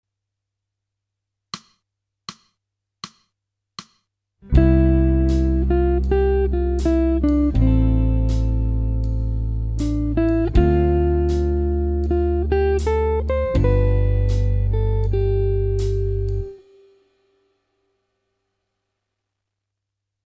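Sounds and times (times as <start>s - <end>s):
jazz music: 4.5s - 16.6s.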